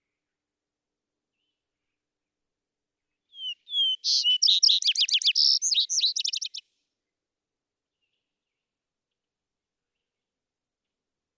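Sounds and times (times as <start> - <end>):
vesper sparrow song: 3.4 - 6.6.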